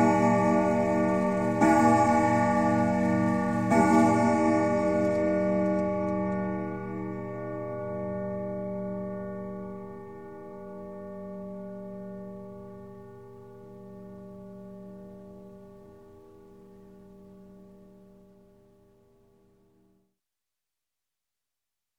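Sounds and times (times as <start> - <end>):
grandfather clock striking: 0.0 - 7.3
grandfather clock chime: 0.0 - 16.0.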